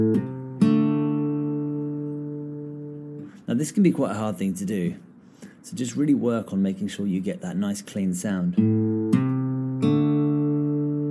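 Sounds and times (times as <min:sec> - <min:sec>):
acoustic guitar playing a blues lick on open D and A strings: 0:00.0 - 0:03.5, 0:08.4 - 0:11.0
speech: 0:03.5 - 0:09.2, 0:09.8 - 0:10.1.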